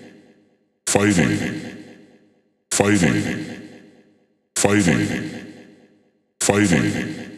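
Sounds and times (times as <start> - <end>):
techno vocal loop: 0.9 - 2.1, 2.7 - 7.3.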